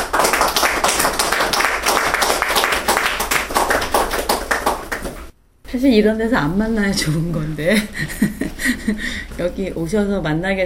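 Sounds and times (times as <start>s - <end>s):
audience applause welcoming a speaker: 0.0s - 5.3s
speech: 5.7s - 10.6s.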